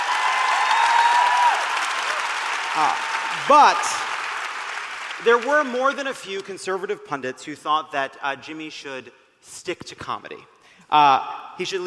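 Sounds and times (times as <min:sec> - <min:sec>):
crowd applauding: 0:00.0 - 0:06.5
speech: 0:02.8 - 0:04.0, 0:05.2 - 0:11.8.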